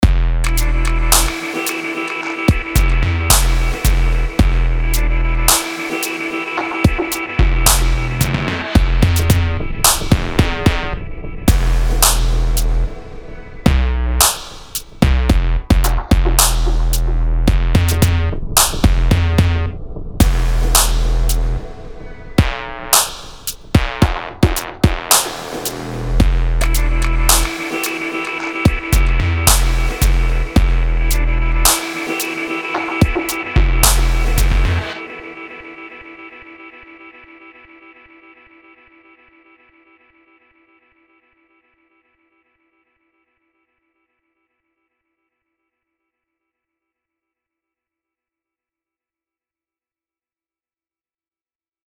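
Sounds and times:
instrumental music: 0.0 - 40.5.

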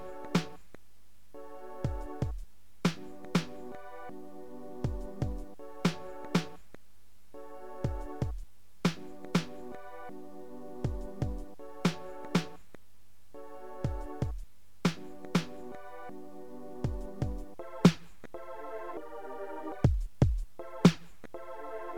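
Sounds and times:
music beat: 0.0 - 0.6, 1.8 - 3.9, 4.8 - 6.6, 7.8 - 10.0, 10.8 - 12.6, 13.8 - 16.0, 16.9 - 18.4, 19.8 - 21.4.

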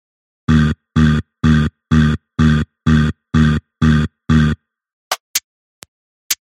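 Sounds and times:
acid disco music: 0.5 - 4.5.

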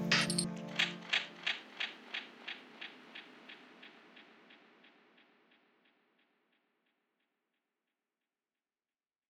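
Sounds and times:
lo-fi music: 0.0 - 1.9.

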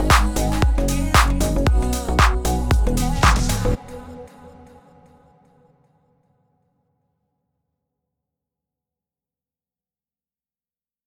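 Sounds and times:
deep house beat: 0.0 - 4.0.

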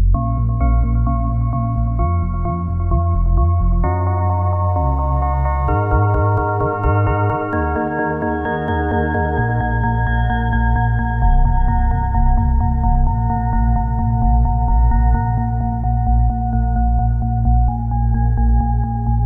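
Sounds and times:
trance music: 0.2 - 19.2.

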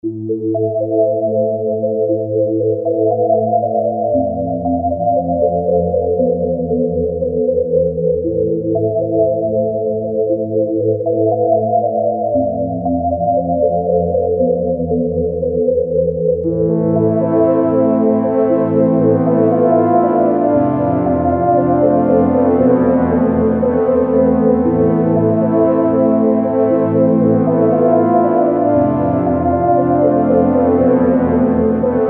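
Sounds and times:
instrumental music: 0.0 - 32.0.

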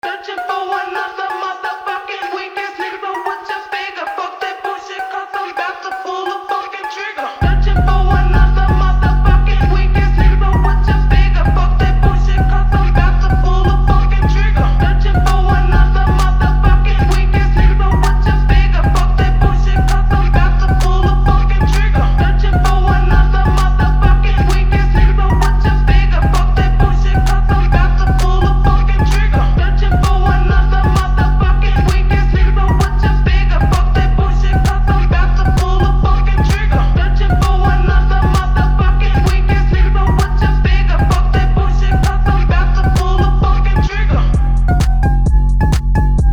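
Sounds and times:
phonk music: 0.0 - 46.3.

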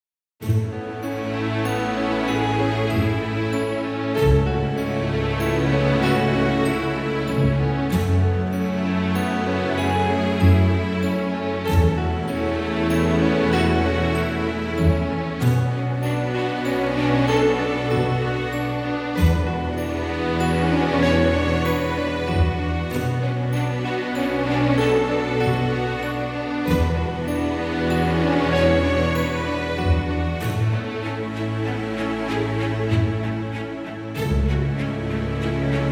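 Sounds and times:
romantic background music: 0.4 - 35.9.

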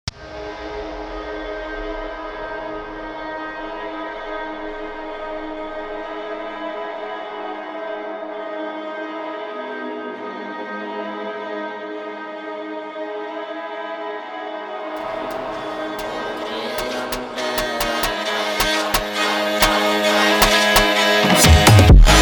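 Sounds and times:
phonk music: 15.0 - 22.2.

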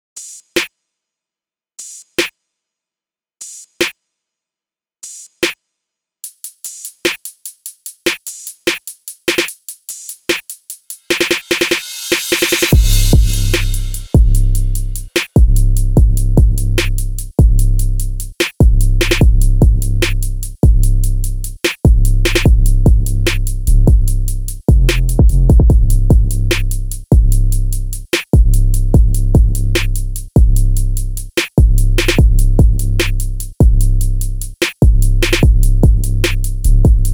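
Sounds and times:
music beat: 6.3 - 37.1.

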